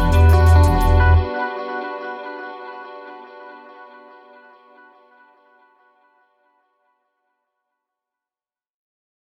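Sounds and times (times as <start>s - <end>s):
drum and bass music: 0.0s - 1.3s.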